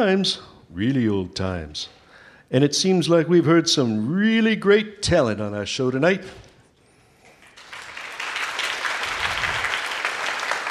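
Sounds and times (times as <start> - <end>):
speech: 0.0 - 6.4
audience applause: 7.4 - 10.6.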